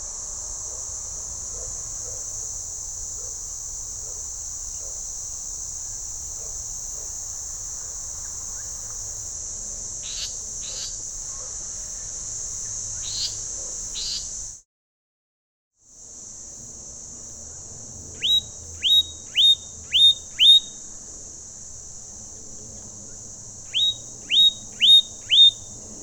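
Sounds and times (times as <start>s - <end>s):
Leaden flycatcher Myiagra rubecula giving harsh buzzy rasping calls: 18.2s - 20.9s, 23.1s - 25.8s.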